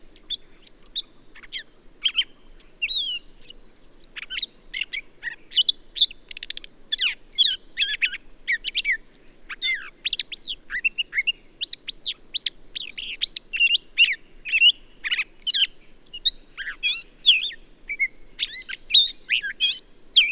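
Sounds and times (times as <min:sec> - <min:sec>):
bird song: 0:00.0 - 0:20.3.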